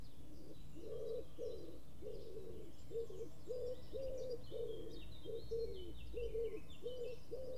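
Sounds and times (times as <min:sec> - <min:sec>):
bird cooing: 0:00.2 - 0:07.5.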